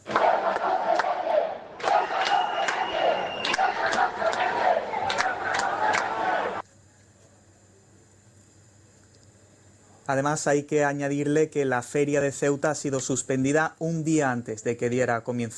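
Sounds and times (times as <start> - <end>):
angry crowd shouting awaiting Sánchez at the Ceuta town hall: 0.0 - 6.6
speech: 10.1 - 15.5.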